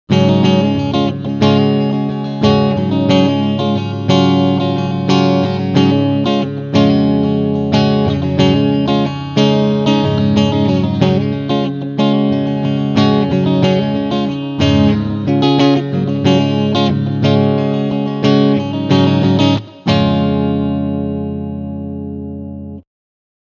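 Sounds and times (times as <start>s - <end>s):
clean guitar strumming on both pickups: 0.1s - 22.8s.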